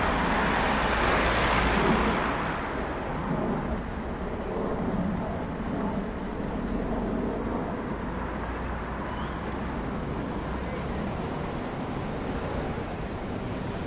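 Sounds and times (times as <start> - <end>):
buses: 0.0 - 4.2, 5.2 - 13.8
cars: 0.0 - 5.0, 6.3 - 13.8
traffic in Budapest Hungary: 0.0 - 13.8
distant walla of people: 9.1 - 13.2.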